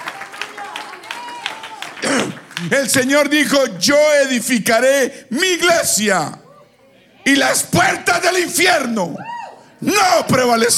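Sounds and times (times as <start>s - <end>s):
audience applause: 0.0s - 3.0s
speech: 2.6s - 6.4s, 7.2s - 10.7s.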